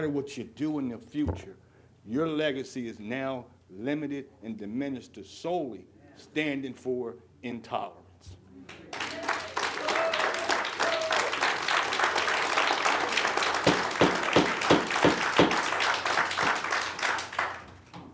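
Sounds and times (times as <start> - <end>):
speech: 0.0 - 8.8
audience applause: 8.9 - 17.7.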